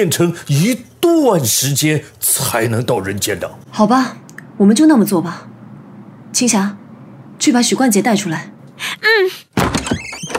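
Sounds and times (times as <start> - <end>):
speech: 0.0 - 5.5, 6.3 - 6.8, 7.4 - 9.4
door being forced open: 9.5 - 10.3.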